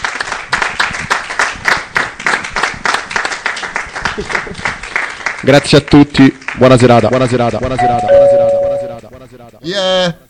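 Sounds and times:
audience applause: 0.0 - 8.0
speech: 5.5 - 8.3, 9.3 - 10.2.

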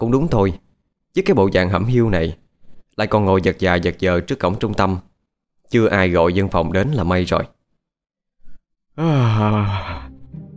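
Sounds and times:
speech: 0.0 - 2.4, 3.0 - 5.1, 5.7 - 7.6, 9.0 - 10.1
person yawning: 9.0 - 10.2.

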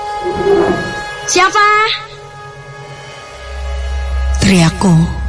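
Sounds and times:
chairs and tables scraping across a floor: 0.2 - 1.2
speech: 1.3 - 2.0, 4.5 - 5.2.

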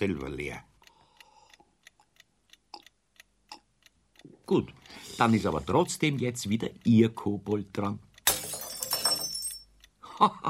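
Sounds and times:
speech: 0.0 - 0.7, 4.5 - 8.1, 10.2 - 10.4
drinking glass breaking: 8.3 - 9.7.

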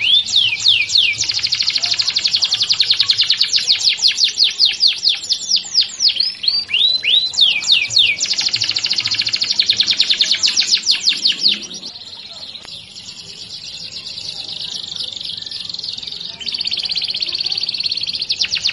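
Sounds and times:
Belgian canary singing: 0.0 - 18.7.

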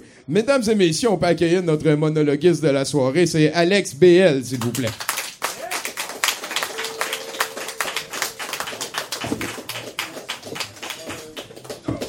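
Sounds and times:
speech: 0.3 - 5.2
audience applause: 4.6 - 12.0.

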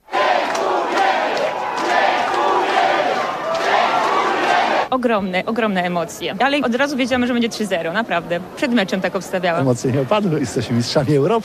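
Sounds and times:
crowd of fans cheering and chanting for volleyball players at Okęcie airport: 0.0 - 4.9
fans shouting: 0.0 - 4.9
speech: 5.0 - 11.4.

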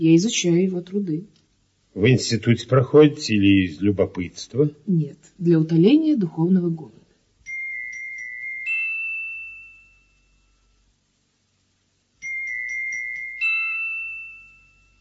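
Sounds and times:
speech: 0.0 - 1.4, 2.0 - 7.0
telephone ringing: 7.5 - 10.2, 12.2 - 14.9.

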